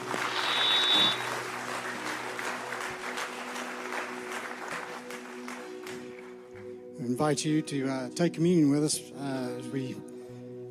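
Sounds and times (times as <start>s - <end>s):
audience applause: 0.0s - 6.3s
speech: 7.1s - 10.1s.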